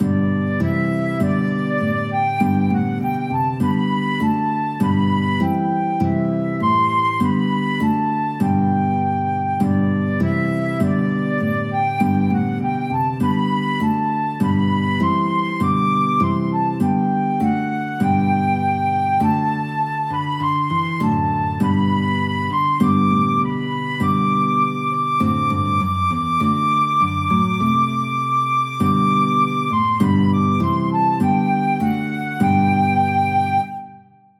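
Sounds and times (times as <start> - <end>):
guitar and flute duet: 0.0 - 34.3.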